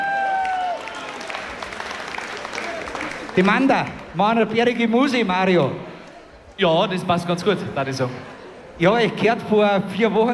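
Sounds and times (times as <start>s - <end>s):
audience applause: 0.0s - 4.1s
speech: 3.4s - 5.9s, 6.6s - 10.3s.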